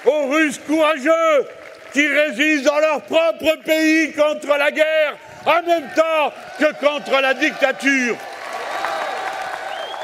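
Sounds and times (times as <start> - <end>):
crowd clapping: 0.0 - 4.0, 5.4 - 10.0
speech: 0.0 - 8.3
crowd cheering: 0.0 - 10.0
whistle-like tones: 9.7 - 10.0.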